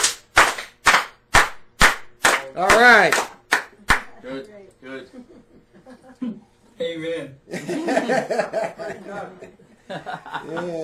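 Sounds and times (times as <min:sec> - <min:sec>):
church congregation giving a Russian clap in unison: 0:00.0 - 0:04.2
speech: 0:02.5 - 0:03.3, 0:04.2 - 0:10.8
laughter: 0:05.0 - 0:06.6, 0:07.5 - 0:10.8.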